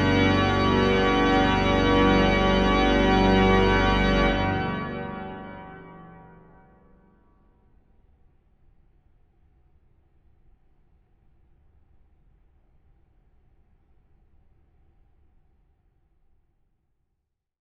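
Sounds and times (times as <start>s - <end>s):
fanfare: 0.0s - 6.8s.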